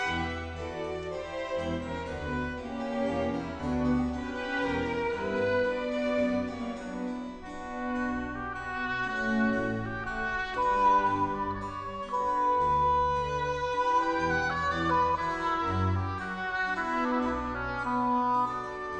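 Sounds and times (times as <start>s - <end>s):
classical music: 0.0s - 18.9s.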